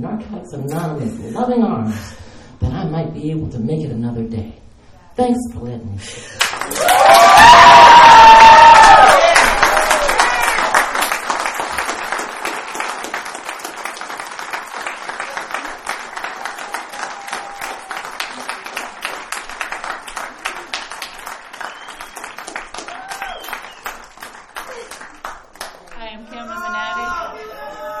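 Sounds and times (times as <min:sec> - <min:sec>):
speech: 0:00.0 - 0:04.6, 0:05.2 - 0:08.6
audience clapping: 0:06.4 - 0:26.5
audience cheering and whooping: 0:06.6 - 0:13.2, 0:14.8 - 0:19.1, 0:20.1 - 0:25.1, 0:26.6 - 0:27.9.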